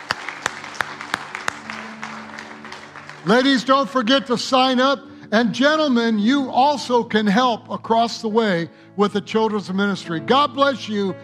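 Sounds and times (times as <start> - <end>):
audience applauding: 0.0 - 4.8
speech: 3.2 - 11.2.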